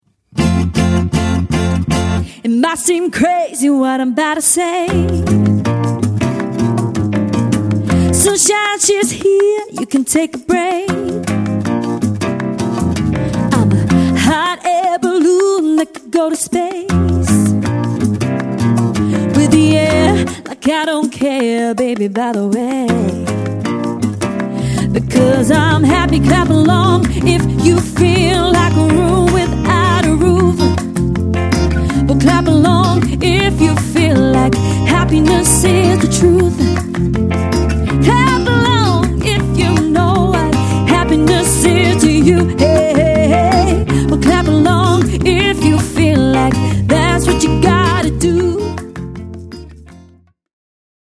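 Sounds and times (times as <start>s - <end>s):
acoustic music: 0.1s - 50.3s.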